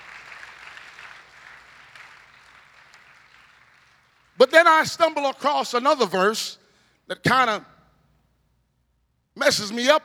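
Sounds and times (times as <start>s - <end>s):
audience applause: 0.0s - 4.5s
speech: 4.4s - 7.7s, 9.4s - 10.0s.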